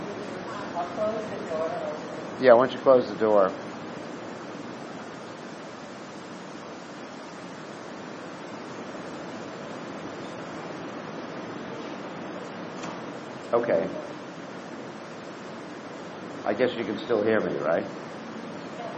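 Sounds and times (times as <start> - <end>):
heavy rain pouring down outside: 0.0 - 18.9
speech: 0.8 - 3.7, 13.5 - 14.0, 16.5 - 18.0.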